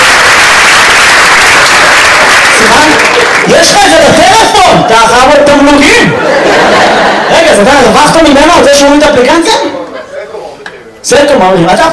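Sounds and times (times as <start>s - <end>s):
audience applause: 0.0s - 4.0s
speech: 4.9s - 9.9s, 11.0s - 11.9s
laughter: 6.0s - 7.7s.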